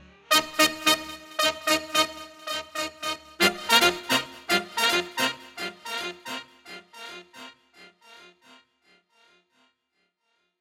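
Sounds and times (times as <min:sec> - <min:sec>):
fanfare: 0:00.3 - 0:07.5.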